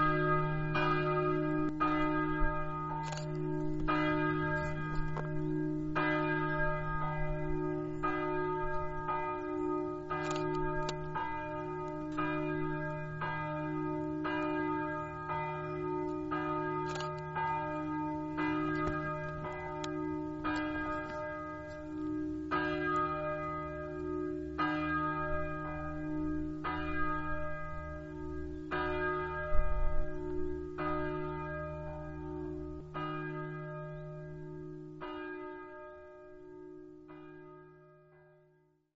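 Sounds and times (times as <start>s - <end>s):
bells ringing: 0.0s - 37.8s.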